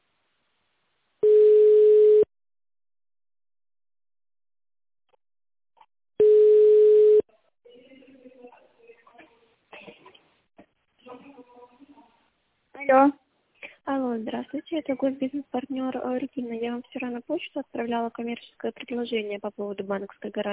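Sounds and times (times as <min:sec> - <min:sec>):
telephone ringing tone: 0:01.2 - 0:02.3, 0:06.2 - 0:07.2
speech: 0:12.9 - 0:13.2, 0:13.9 - 0:20.5.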